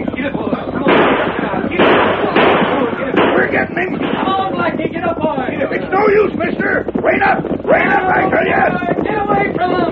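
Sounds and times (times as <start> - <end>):
continuous rough noise: 0.0 - 9.9
gunshots in a radio western drama: 0.8 - 4.3
speech: 6.1 - 8.8.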